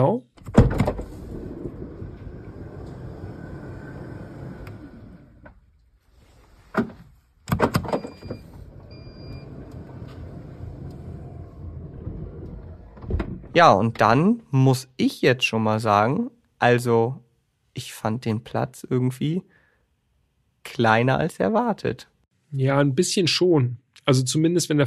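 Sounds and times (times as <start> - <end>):
electric sliding door of a van opening: 0.6 - 5.8, 7.7 - 13.6
speech: 13.6 - 17.2, 17.8 - 19.5, 20.7 - 24.8.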